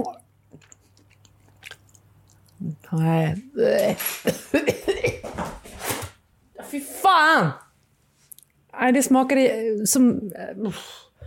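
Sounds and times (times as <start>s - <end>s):
chewing and biting on something tough: 0.5s - 2.7s
speech: 2.9s - 5.2s, 6.7s - 7.6s, 8.8s - 11.0s.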